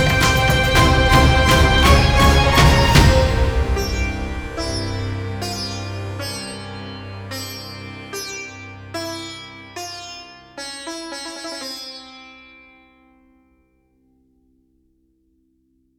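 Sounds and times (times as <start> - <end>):
Indian epic action drums: 0.0 - 5.4.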